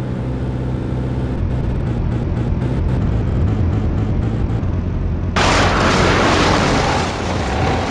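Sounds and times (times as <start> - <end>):
airplane engine droning and sputtering: 0.0 - 7.8
explosion: 5.4 - 7.8.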